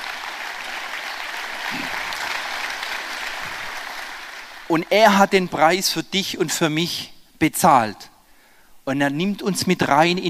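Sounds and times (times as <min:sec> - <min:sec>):
audience applause: 0:00.0 - 0:04.8
speech: 0:04.7 - 0:08.1, 0:08.8 - 0:10.2.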